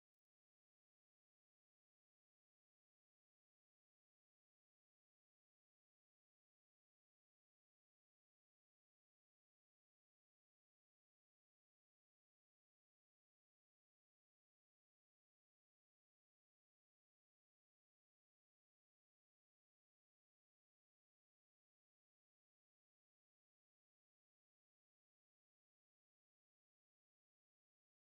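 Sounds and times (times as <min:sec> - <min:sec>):
guitar: 0:00.0 - 0:28.1.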